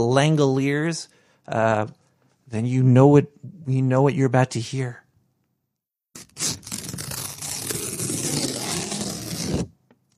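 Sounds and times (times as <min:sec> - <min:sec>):
speech: 0:00.0 - 0:05.0
paper shredding: 0:06.2 - 0:09.7.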